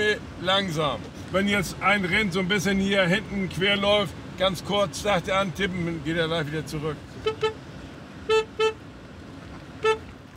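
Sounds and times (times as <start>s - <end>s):
speech: 0.1s - 7.5s
car horn honking: 7.1s - 8.9s, 9.8s - 10.1s.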